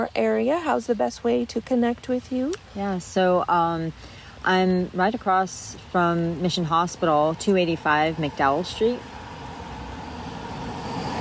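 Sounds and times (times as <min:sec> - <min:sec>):
speech: 0:00.0 - 0:09.1
small car passing outside a building across from Mission Hospital on McDowell Street: 0:06.9 - 0:11.1.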